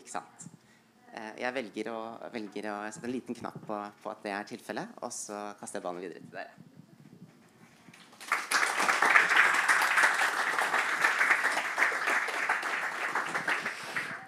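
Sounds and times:
speech: 0.1 - 0.3, 1.2 - 6.7
audience applause: 8.0 - 14.2.

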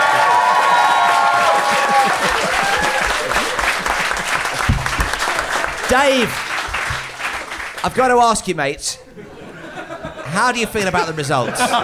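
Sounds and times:
audience applause: 0.0 - 8.2
laughter: 1.4 - 5.9, 9.0 - 11.8
speech: 5.9 - 6.5, 7.8 - 9.3, 10.3 - 11.8.

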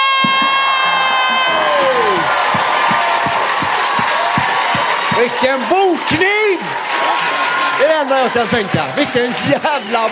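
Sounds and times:
audience cheering and applauding at a live stand-up comedy show: 0.0 - 10.1
sharp thumps: 2.2 - 5.3
speech: 5.4 - 10.1.

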